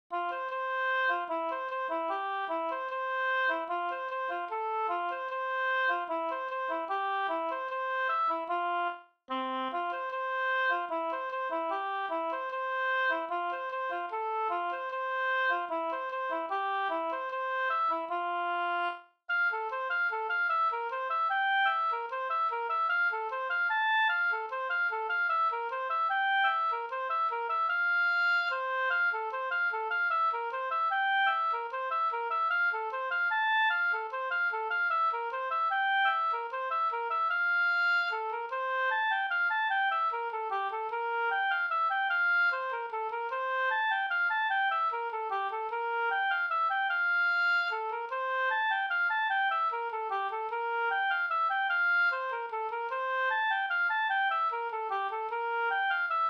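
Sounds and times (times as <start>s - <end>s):
folk dance waltz variant from Bayern: 0.1s - 56.2s.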